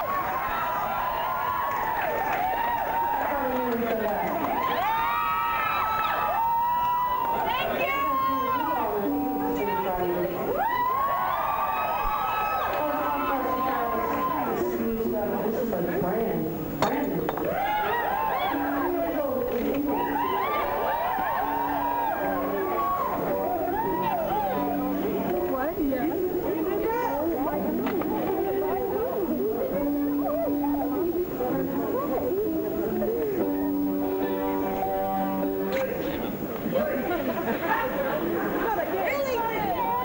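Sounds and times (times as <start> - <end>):
crowd: 0.0 - 40.0
laughter: 0.0 - 40.0.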